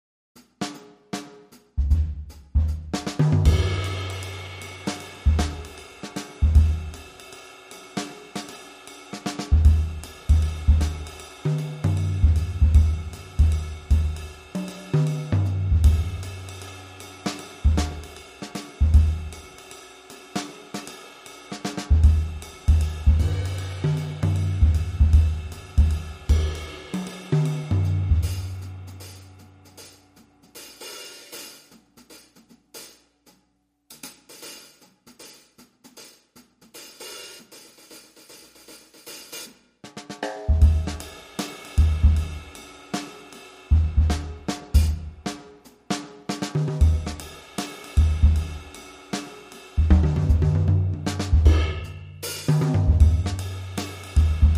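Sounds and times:
cool jazzy music: 1.2 - 7.0, 7.9 - 19.7, 21.5 - 32.4, 40.4 - 54.5.

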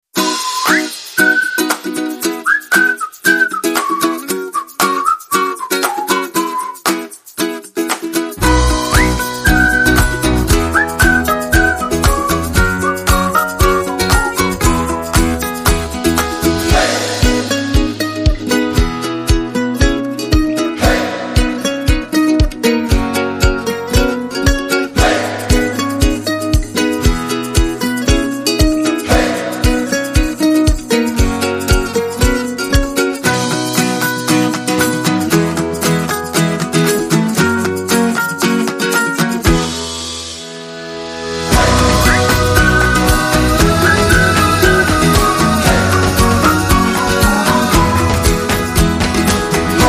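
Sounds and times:
ukulele: 0.0 - 49.8.

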